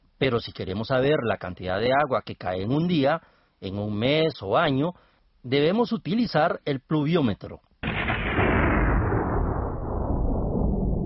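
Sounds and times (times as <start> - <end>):
speech: 0.2 - 7.7
thunder from a lightning strike: 7.8 - 11.0.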